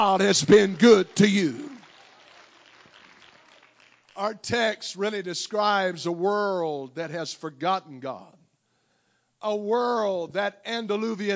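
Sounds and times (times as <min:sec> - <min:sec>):
speech: 0:00.0 - 0:01.7, 0:04.2 - 0:08.4, 0:09.4 - 0:11.3
audience clapping: 0:00.0 - 0:04.6.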